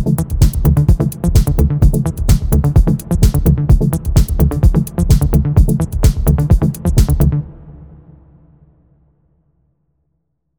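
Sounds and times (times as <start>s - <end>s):
progressive house music: 0.0s - 7.5s.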